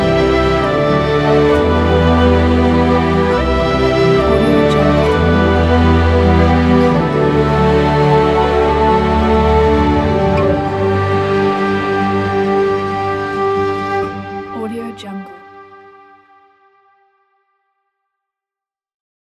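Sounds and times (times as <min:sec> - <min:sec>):
romantic flute and orchestra: 0:00.0 - 0:14.8.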